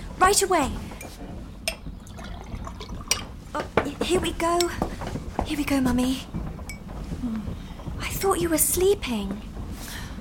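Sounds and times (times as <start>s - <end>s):
speech: 0.3s - 1.2s, 3.6s - 6.4s, 8.2s - 9.5s
water pouring into a glass: 2.0s - 3.3s.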